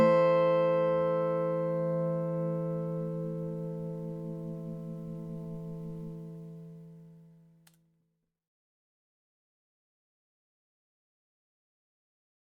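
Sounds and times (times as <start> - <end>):
graphite guitar: 0.0 - 7.6.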